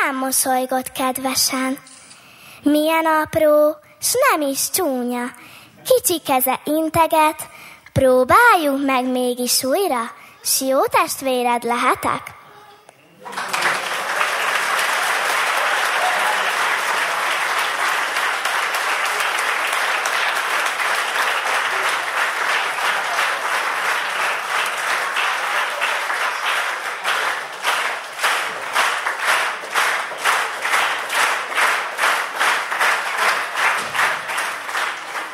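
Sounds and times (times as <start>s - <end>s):
speech: 0.1s - 2.0s, 2.6s - 12.4s, 13.2s - 13.6s
audience applause: 13.2s - 35.3s.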